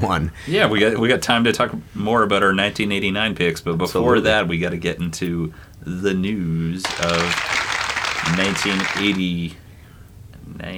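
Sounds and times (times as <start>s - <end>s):
speech: 0.0s - 9.6s, 10.5s - 10.7s
audience applause: 6.8s - 9.3s.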